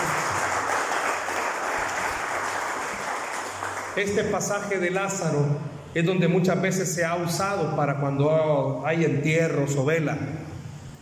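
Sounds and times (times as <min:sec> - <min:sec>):
audience applause: 0:00.0 - 0:04.2
speech: 0:04.0 - 0:10.4.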